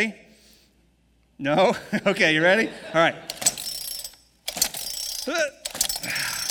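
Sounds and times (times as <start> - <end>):
speech: 0.0 - 0.2, 1.4 - 3.4
laughter: 1.7 - 3.4
chainsaw starter cord pulls, engine not starting: 3.3 - 6.4.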